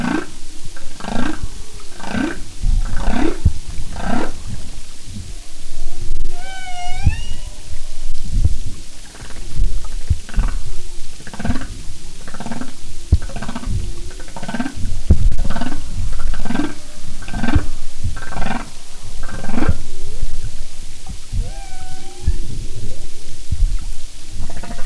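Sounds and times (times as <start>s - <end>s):
low underwater noise: 0.0s - 24.8s
humpback whale song: 6.2s - 8.1s, 21.1s - 23.0s.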